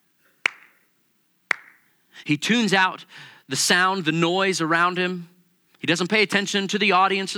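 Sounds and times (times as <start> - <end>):
hand claps from a single person: 0.4 - 0.9, 1.5 - 1.9
speech: 2.2 - 7.3.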